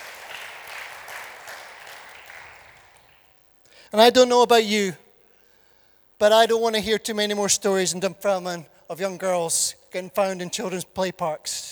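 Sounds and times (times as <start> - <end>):
audience applause: 0.0 - 3.3
speech: 3.9 - 5.0, 6.2 - 11.7.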